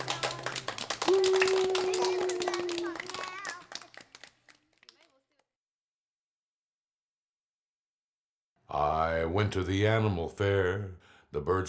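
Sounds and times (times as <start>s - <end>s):
people clapping their hands: 0.0s - 5.5s
speech: 9.4s - 11.6s.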